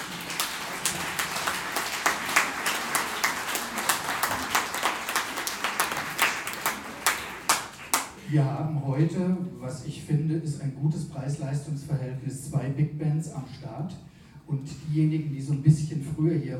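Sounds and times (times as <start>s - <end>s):
audience clapping: 0.0s - 8.3s
speech: 8.3s - 16.5s.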